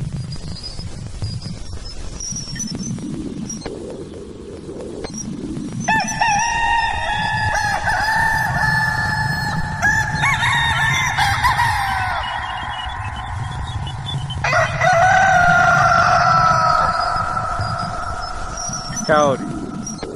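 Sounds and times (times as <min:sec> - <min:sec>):
rooster crowing: 0:05.9 - 0:18.9.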